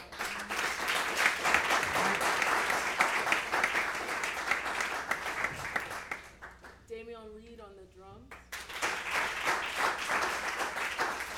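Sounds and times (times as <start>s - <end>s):
audience applause: 0.0s - 6.6s, 8.5s - 11.3s.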